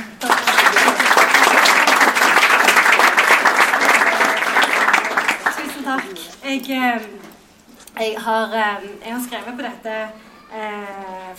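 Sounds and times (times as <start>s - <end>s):
warm audience applause: 0.0s - 6.4s
speech: 6.5s - 7.2s, 8.0s - 11.3s.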